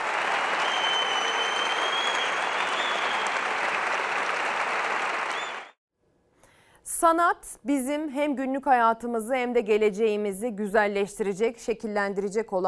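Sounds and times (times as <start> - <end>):
audience giving orchestra a standing ovation: 0.0 - 5.8
speech: 7.0 - 12.6.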